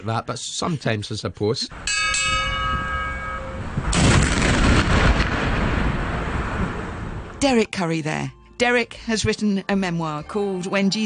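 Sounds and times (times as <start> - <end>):
speech: 0.0 - 2.4, 7.4 - 11.0
noonday gun cannon firing: 3.9 - 6.8.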